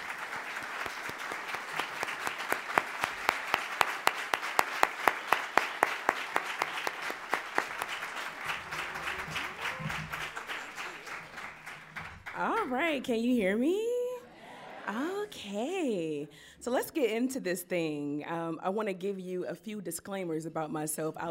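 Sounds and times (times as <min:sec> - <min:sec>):
audience applause welcoming a speaker at the City Club of Cleveland: 0:00.0 - 0:12.9
speech: 0:12.9 - 0:13.9, 0:15.5 - 0:21.2.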